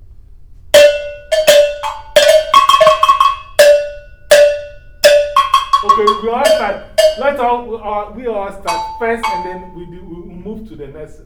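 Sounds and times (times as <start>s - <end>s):
bells played along with music: 0.8s - 7.8s, 8.6s - 10.1s
speech: 5.9s - 11.2s.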